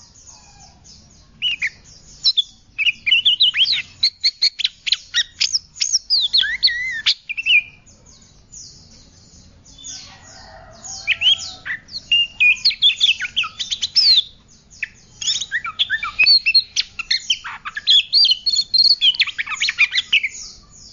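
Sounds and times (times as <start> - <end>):
Oriental magpie-robin whistling: 1.4 - 7.8, 11.0 - 20.5.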